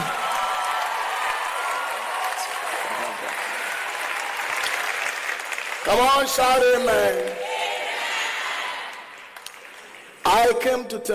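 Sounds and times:
crowd applause: 0.0 - 10.2
speech: 5.9 - 7.4, 10.3 - 11.1.

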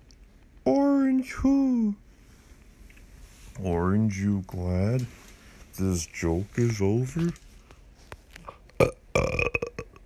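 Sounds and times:
speech: 1.2 - 2.0, 3.6 - 5.2, 5.8 - 7.4
burp: 8.8 - 10.0.

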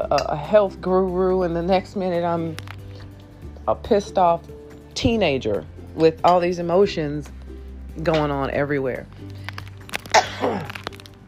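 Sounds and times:
speech: 0.1 - 2.7, 3.7 - 7.4, 8.0 - 9.4
cough: 10.1 - 10.7.

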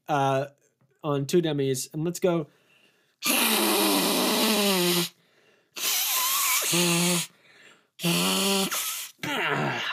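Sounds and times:
speech: 0.1 - 2.6, 3.2 - 3.6, 6.7 - 7.3, 8.0 - 8.8
person blowing nose: 3.2 - 7.4, 8.0 - 9.3.

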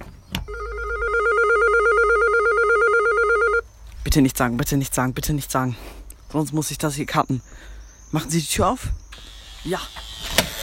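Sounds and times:
electric doorbell trilling: 0.5 - 3.6
speech: 4.1 - 10.4.

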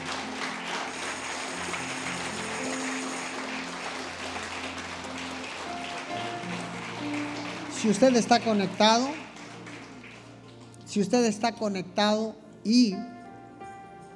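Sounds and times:
audience applauding: 0.0 - 10.8
speech: 7.8 - 9.2, 10.9 - 13.1.

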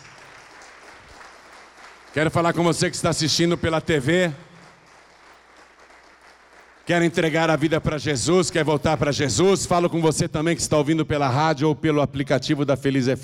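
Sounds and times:
applause: 0.0 - 9.5
speech: 2.2 - 4.5, 6.9 - 13.2.

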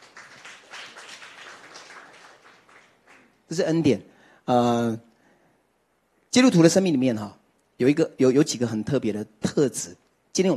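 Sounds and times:
audience clapping hands: 0.0 - 3.6
speech: 3.5 - 5.1, 6.3 - 10.5.

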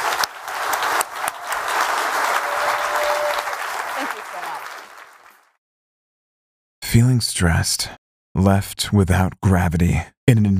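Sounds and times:
audience applause: 0.0 - 5.6
speech: 7.0 - 10.5.

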